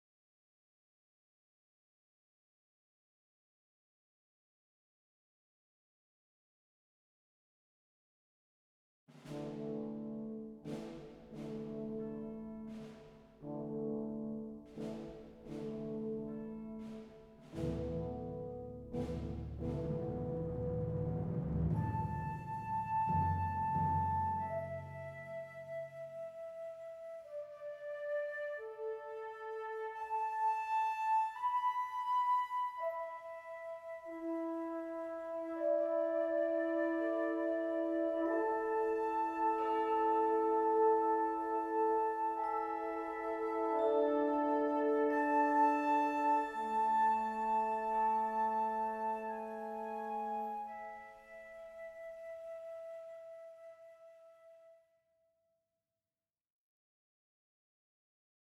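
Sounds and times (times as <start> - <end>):
world music: 9.2 - 13.8, 14.4 - 32.1, 32.7 - 53.1.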